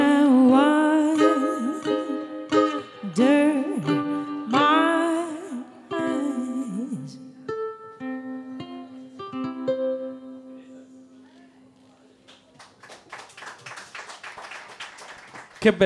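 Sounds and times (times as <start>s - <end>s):
melodic vocal line with held notes: 0.0s - 7.6s
audience applause: 12.3s - 15.8s
speech: 15.7s - 15.8s.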